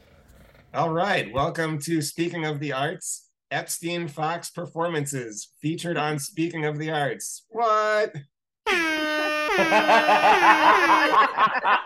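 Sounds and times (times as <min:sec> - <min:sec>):
speech: 0:00.7 - 0:11.8
air horn blast: 0:08.7 - 0:11.2
laughter: 0:09.5 - 0:11.8.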